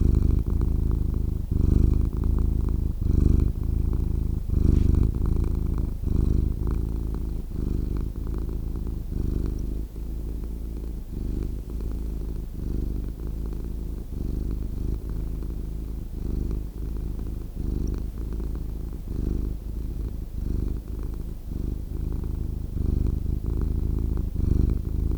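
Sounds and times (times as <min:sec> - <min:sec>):
cat purring: 0:00.0 - 0:25.1.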